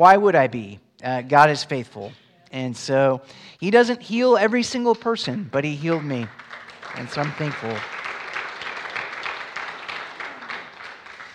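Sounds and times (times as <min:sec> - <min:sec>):
speech: 0:00.0 - 0:08.0
audience clapping: 0:05.8 - 0:11.3.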